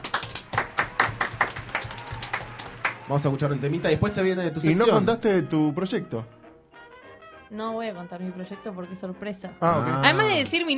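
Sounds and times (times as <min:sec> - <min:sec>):
studio applause: 0:00.0 - 0:04.2
speech: 0:03.1 - 0:06.4, 0:07.5 - 0:10.7.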